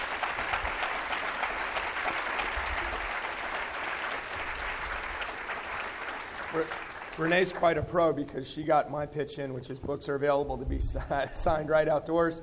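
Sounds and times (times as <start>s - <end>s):
audience applause: 0.0s - 7.8s
speech: 6.6s - 12.4s.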